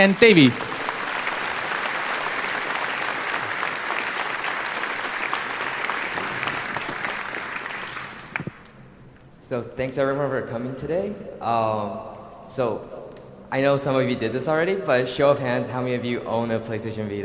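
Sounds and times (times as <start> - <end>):
speech: 0.0 - 0.7, 9.5 - 17.2
audience applause: 0.0 - 8.6.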